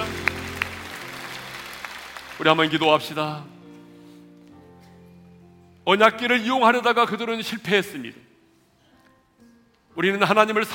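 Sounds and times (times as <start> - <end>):
audience applause: 0.0 - 3.1
speech: 2.4 - 3.6, 5.8 - 8.3, 10.0 - 10.7.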